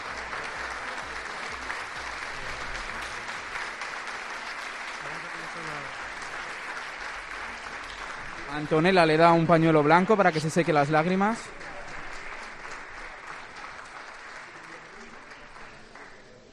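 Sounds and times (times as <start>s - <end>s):
auditorium audience applauding: 0.0s - 16.5s
speech: 8.6s - 11.6s.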